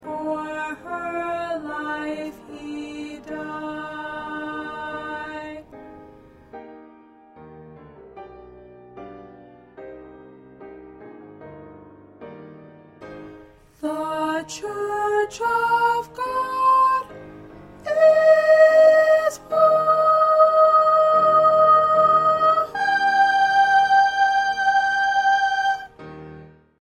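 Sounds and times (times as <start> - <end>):
first soprano singing: 0.0 - 6.2, 13.6 - 26.0.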